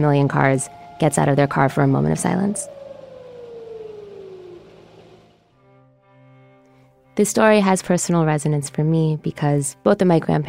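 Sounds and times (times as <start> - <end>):
speech: 0.0 - 2.8, 7.2 - 10.4
Yom HaShoah memorial siren: 0.0 - 5.7.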